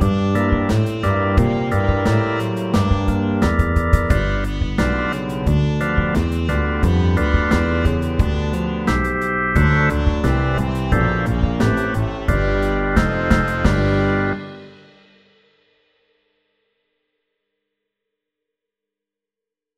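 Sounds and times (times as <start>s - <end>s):
eight-bar blues: 0.0s - 14.8s.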